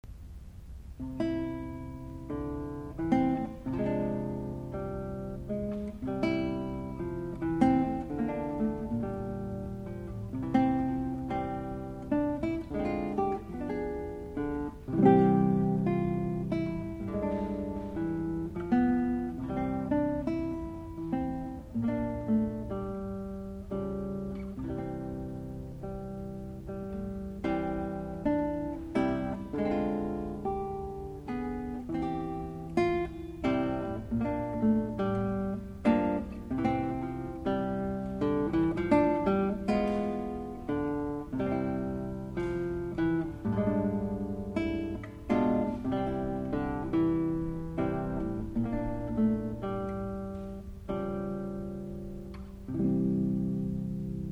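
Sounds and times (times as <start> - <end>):
sad classical guitar piece: 0.0 - 54.2.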